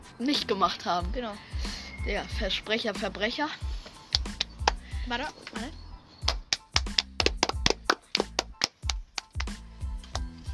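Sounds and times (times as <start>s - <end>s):
speech: 0.2s - 3.8s, 5.0s - 5.8s
hands clapping: 3.9s - 5.7s, 6.2s - 10.3s.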